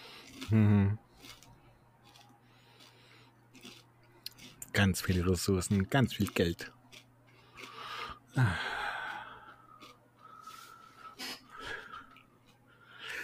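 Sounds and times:
young man breathing heavily, catching his breath: 0:00.0 - 0:00.9, 0:07.4 - 0:13.2
speech: 0:00.5 - 0:01.0, 0:04.8 - 0:06.8, 0:08.4 - 0:08.7.

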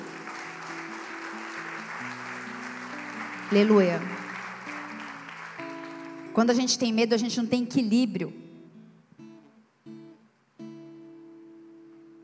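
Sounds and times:
audience applauding: 0:00.0 - 0:06.7
speech: 0:03.5 - 0:04.2, 0:06.4 - 0:08.4.

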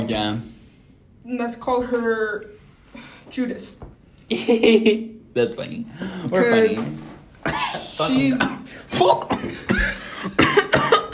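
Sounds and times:
speech: 0:00.1 - 0:00.6, 0:01.2 - 0:02.6, 0:03.3 - 0:10.6
person coughing after choking on water: 0:07.4 - 0:11.1.

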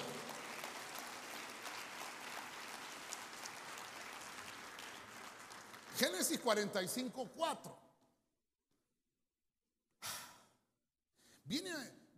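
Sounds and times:
audience clapping loudly: 0:00.0 - 0:07.1
speech: 0:06.0 - 0:07.8.

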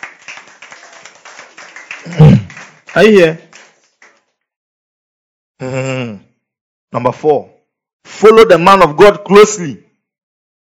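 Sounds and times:
crowd clapping: 0:00.0 - 0:04.4
speech: 0:03.0 - 0:03.5, 0:05.6 - 0:05.9, 0:06.9 - 0:07.6, 0:08.2 - 0:09.8.

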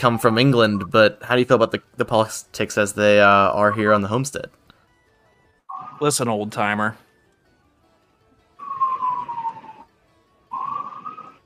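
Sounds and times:
sirens: 0:00.0 - 0:00.8, 0:04.8 - 0:06.2, 0:08.5 - 0:11.4
speech: 0:00.0 - 0:04.6, 0:06.0 - 0:07.0.

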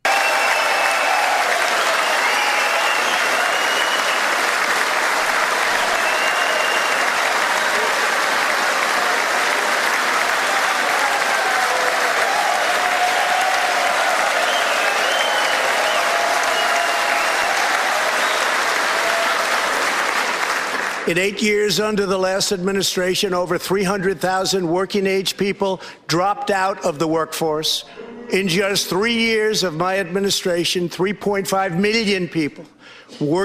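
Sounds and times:
scattered cheers and shouts: 0:00.0 - 0:20.0
large indoor congressional audience applauding: 0:00.0 - 0:21.2
speech: 0:21.1 - 0:33.4.

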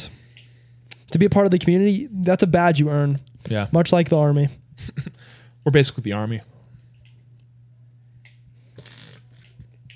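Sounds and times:
speech: 0:01.1 - 0:06.5
loud sipping of hot chocolate: 0:08.8 - 0:09.4.

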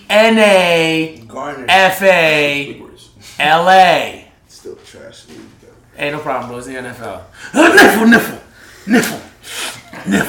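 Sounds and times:
speech: 0:00.1 - 0:10.2
loud sneeze: 0:07.6 - 0:10.2.

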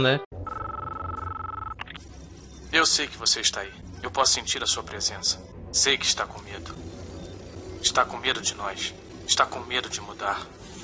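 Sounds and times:
speech: 0:00.0 - 0:00.3, 0:02.7 - 0:06.9, 0:07.8 - 0:10.6
telephone ringing in the closing scene of The Matrix film: 0:00.4 - 0:02.0.

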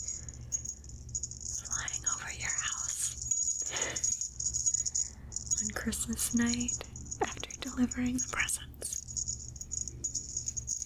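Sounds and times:
jingle bell ringing: 0:00.0 - 0:10.8
soft whispering voice: 0:01.5 - 0:03.3, 0:05.5 - 0:09.1
speech: 0:05.8 - 0:06.9, 0:07.8 - 0:08.7.

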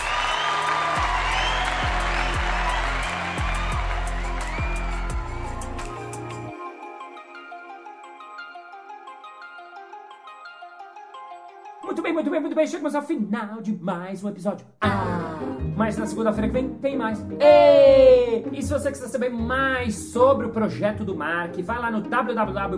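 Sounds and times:
thumping beat: 0:00.0 - 0:06.0
crowd applause: 0:00.0 - 0:06.5
people whooping: 0:00.0 - 0:06.5, 0:17.4 - 0:18.4
speech: 0:12.0 - 0:15.2, 0:15.8 - 0:22.7.

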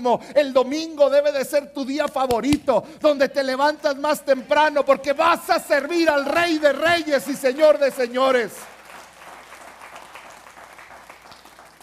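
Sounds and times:
speech: 0:00.0 - 0:08.7
audience applause: 0:05.1 - 0:11.8.

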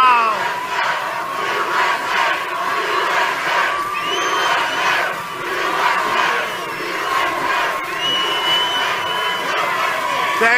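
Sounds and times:
large rally crowd cheering: 0:00.0 - 0:10.5
high whistles: 0:03.6 - 0:10.4.

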